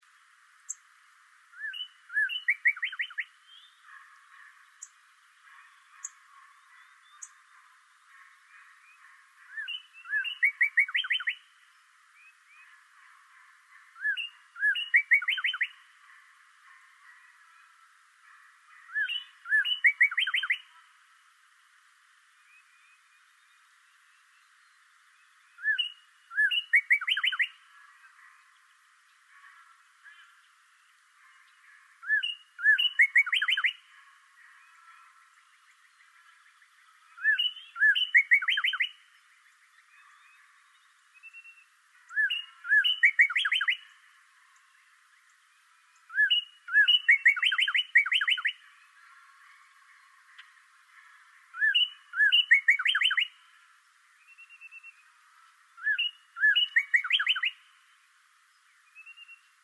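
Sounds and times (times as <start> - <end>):
bird: 1.5 - 21.0, 22.4 - 59.6.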